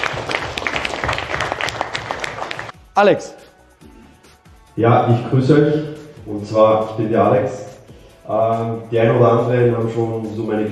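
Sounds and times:
audience applause at a German business talk event: 0.0s - 2.8s
speech: 3.0s - 3.4s, 4.8s - 7.7s, 8.3s - 10.7s.

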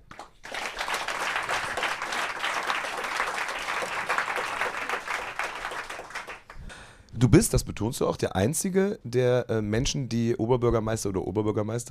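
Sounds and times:
audience applause: 0.1s - 6.6s
speech: 7.2s - 11.8s.

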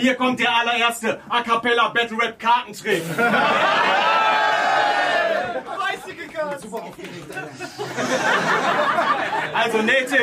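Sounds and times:
speech: 0.0s - 4.4s, 6.4s - 10.2s
laughter: 2.9s - 6.2s, 7.0s - 10.2s
audience applause: 3.8s - 9.6s.

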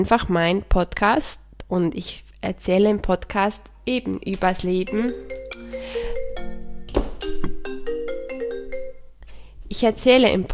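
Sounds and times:
speech: 0.0s - 5.4s, 9.7s - 10.5s
phone ringtone: 4.7s - 9.1s.

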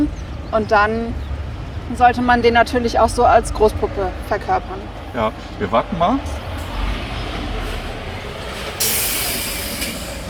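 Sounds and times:
speech: 0.0s - 1.3s, 1.9s - 6.4s
train rumbling: 0.0s - 10.2s
train letting off steam: 6.6s - 10.2s.

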